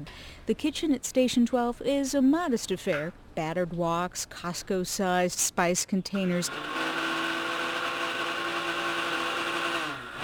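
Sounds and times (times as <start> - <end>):
speech: 0.0 - 7.0
worn-out blender motor whining in a fire station kitchen: 6.3 - 10.2.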